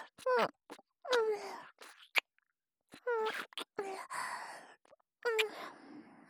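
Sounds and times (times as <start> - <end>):
ASMR kissing sounds: 0.2 - 2.3, 3.0 - 3.8, 5.3 - 5.5.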